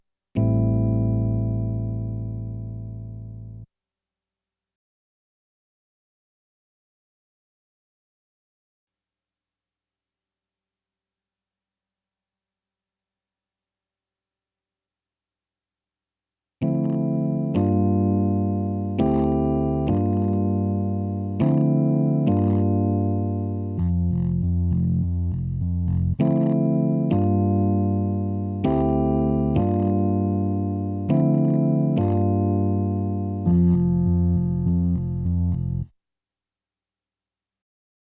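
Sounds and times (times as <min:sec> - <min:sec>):
keyboard playing: 0:00.4 - 0:03.6, 0:16.6 - 0:35.9.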